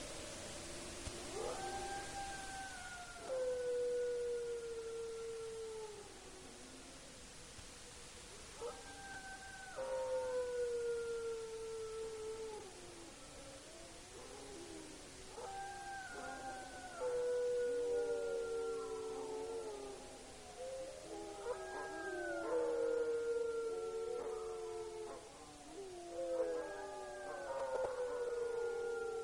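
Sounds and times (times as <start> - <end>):
dogs howling: 0.0 - 7.0, 8.6 - 29.2.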